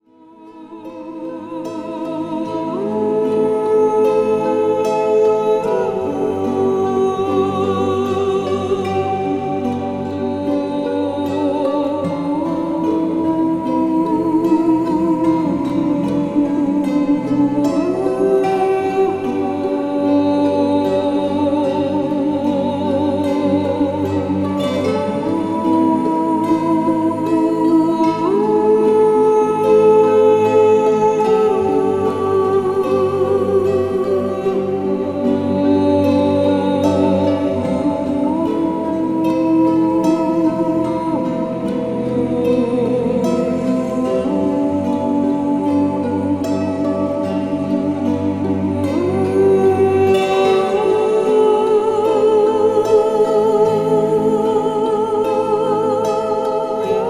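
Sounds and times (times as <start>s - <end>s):
angelic voice: 0.0s - 57.0s.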